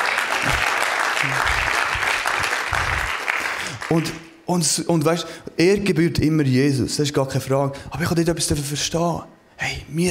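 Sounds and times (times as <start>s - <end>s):
audience applause: 0.0s - 4.2s
speech: 3.9s - 10.0s.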